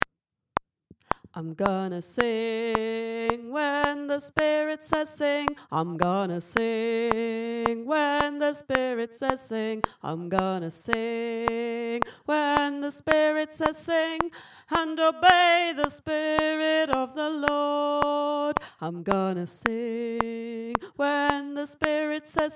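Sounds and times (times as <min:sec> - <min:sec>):
tenor singing: 0:01.1 - 0:22.5.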